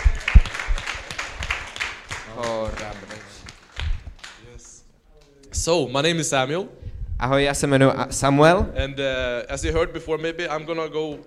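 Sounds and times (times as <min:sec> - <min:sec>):
audience applause: 0:00.0 - 0:04.8
speech: 0:05.6 - 0:11.2.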